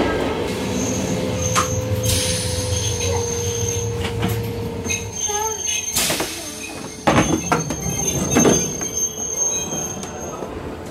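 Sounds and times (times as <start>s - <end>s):
train low rumble: 0.1s - 5.9s
train wheels squealing arriving at Montreux railway station: 0.5s - 10.6s.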